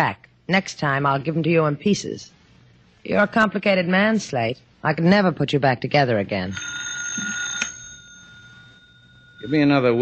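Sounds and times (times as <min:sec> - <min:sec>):
speech: 0:00.0 - 0:02.4, 0:03.0 - 0:07.4, 0:09.4 - 0:10.0
telephone ringing: 0:06.4 - 0:10.0.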